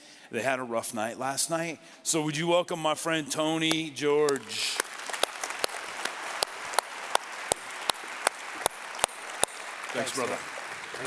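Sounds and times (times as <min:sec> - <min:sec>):
speech: 0:00.3 - 0:04.8, 0:10.0 - 0:11.0
steady evenly spaced sharp claps: 0:03.6 - 0:11.0
church audience applause welcoming a guest speaker: 0:04.3 - 0:11.0.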